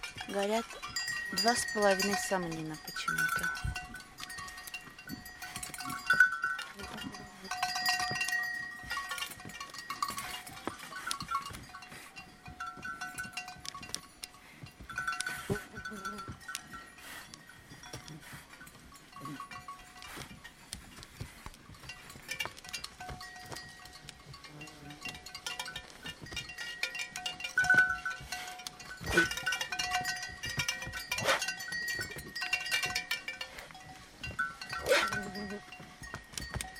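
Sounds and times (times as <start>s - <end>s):
reindeer bells at a Siberian nomad camp: 0.0s - 36.7s
speech: 0.2s - 4.0s.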